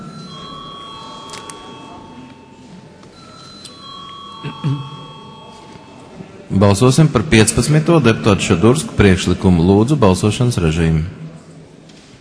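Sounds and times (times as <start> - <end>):
electric bell ringing in a parliament chamber before a vote: 0.0 - 6.2
low room murmur: 0.0 - 12.1
speech: 4.4 - 4.9, 6.6 - 11.2.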